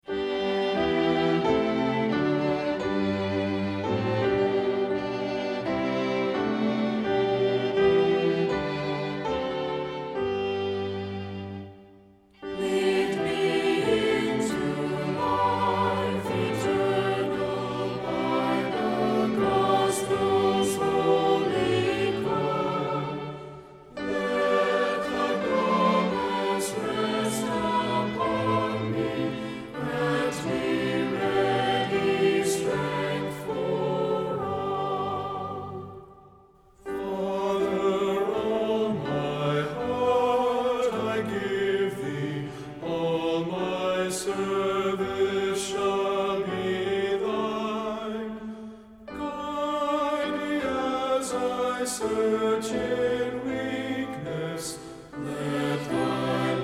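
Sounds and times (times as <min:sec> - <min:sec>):
music: 0:00.0 - 0:56.6.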